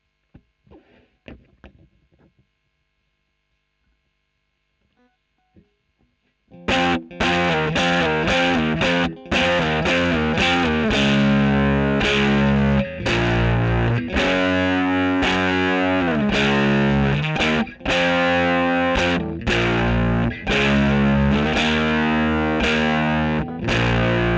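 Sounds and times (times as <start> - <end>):
electric guitar recorded with a Royer microphone: 6.5 - 24.3.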